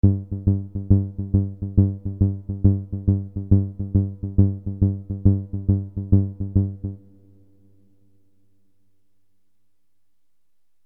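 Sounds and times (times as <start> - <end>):
bass: 0.0 - 7.5.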